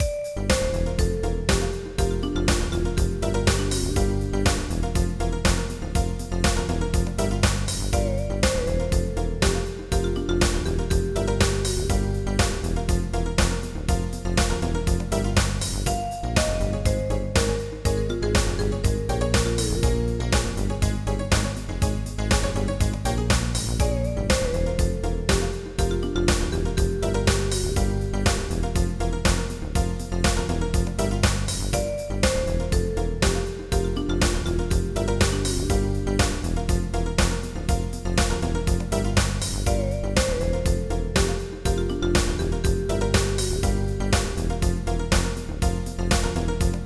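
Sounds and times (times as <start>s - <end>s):
marimba: 0.0s - 46.8s.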